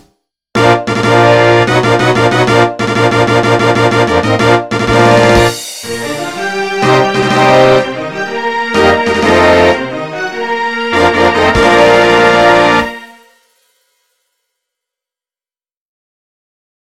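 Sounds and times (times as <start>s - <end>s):
fanfare: 0.6s - 13.5s.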